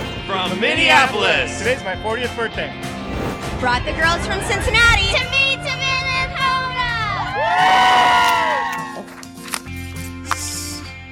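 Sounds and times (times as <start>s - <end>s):
speech: 0.3s - 5.4s, 7.4s - 8.2s
low hum: 2.8s - 7.9s
outdoor crowd cheering and whooping: 6.9s - 9.3s.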